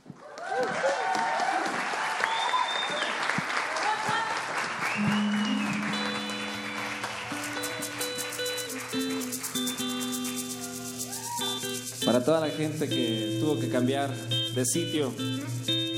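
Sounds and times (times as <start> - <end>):
audience applause at a concert: 0.2 - 12.0
speech: 12.2 - 15.8.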